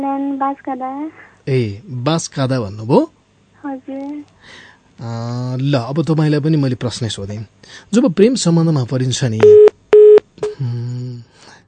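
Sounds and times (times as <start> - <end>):
speech: 0.0 - 9.8, 10.6 - 10.8
telephone line tone: 9.4 - 10.2.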